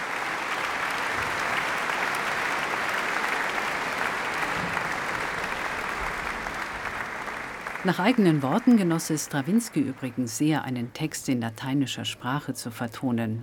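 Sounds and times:
concert hall audience applause: 0.0 - 10.6
speech: 7.8 - 13.4.

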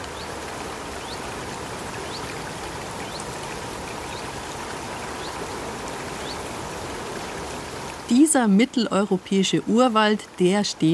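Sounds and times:
birds chirping in the Bayerischer Wald: 0.0 - 7.5
babbling stream in the Bayerischer Wald: 0.0 - 10.9
speech: 8.1 - 10.9.

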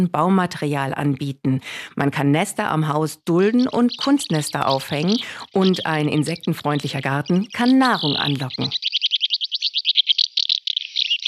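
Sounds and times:
speech: 0.0 - 8.9
house martin calls: 2.6 - 11.2.

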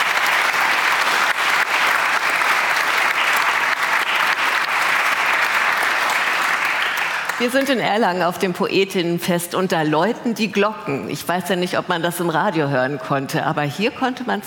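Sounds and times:
audience applause: 0.0 - 7.8
speech: 7.4 - 14.4.

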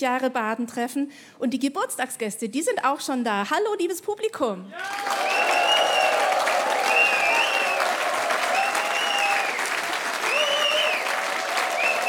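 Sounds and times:
speech: 0.0 - 5.7
audience applause: 4.8 - 12.0.

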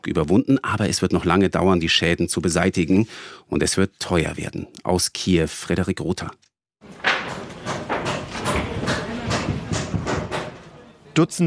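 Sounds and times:
speech: 0.0 - 6.5, 11.2 - 11.4
civil protection workers hammering on the Maria-Entschlafenskathedrale: 6.8 - 10.8.

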